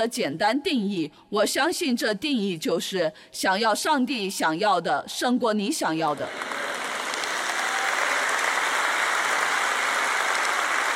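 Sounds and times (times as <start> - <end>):
speech: 0.0 - 6.7
audience applause, loud clapping: 6.3 - 10.9.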